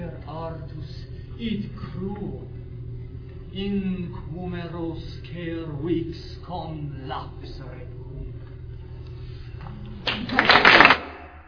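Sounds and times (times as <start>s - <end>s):
speech: 1.4s - 2.6s, 3.6s - 8.0s
loud clapping: 10.0s - 11.4s.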